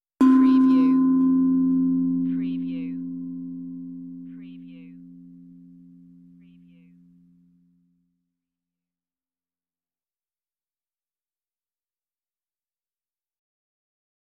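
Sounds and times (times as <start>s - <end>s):
meditative tongue drum tone: 0.2s - 7.6s.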